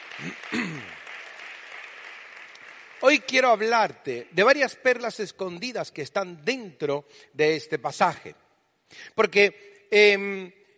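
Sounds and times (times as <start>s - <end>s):
audience applause: 0.0s - 4.2s
speech: 0.2s - 1.0s, 3.0s - 10.6s.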